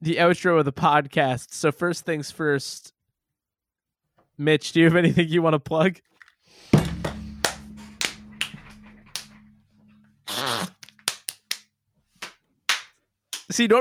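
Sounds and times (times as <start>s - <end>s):
speech: 0.0s - 3.0s, 4.4s - 7.2s, 13.5s - 13.7s
hands clapping: 6.9s - 9.4s, 10.5s - 13.7s.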